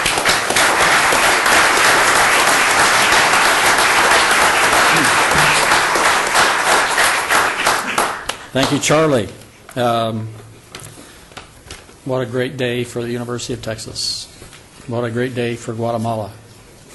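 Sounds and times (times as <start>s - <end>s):
audience applause welcoming a university provost to the podium: 0.0s - 8.9s
speech: 8.5s - 10.5s, 12.0s - 14.3s, 14.9s - 16.4s.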